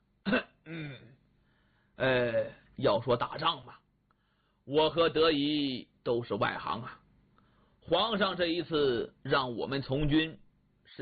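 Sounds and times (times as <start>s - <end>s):
speech: 0.2s - 1.0s, 2.0s - 3.8s, 4.7s - 7.0s, 7.9s - 11.0s
throat clearing by a storyteller voicing a character: 0.2s - 1.2s.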